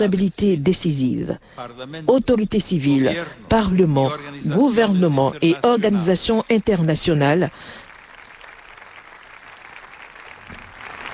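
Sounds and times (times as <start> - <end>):
speech: 0.0 - 7.8
audience applause after a speech: 7.5 - 11.1.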